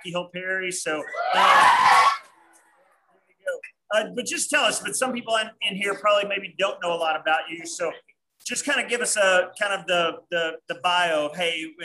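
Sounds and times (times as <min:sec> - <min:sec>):
speech: 0:00.0 - 0:02.1, 0:03.9 - 0:11.8
excited audience screaming: 0:01.0 - 0:02.4.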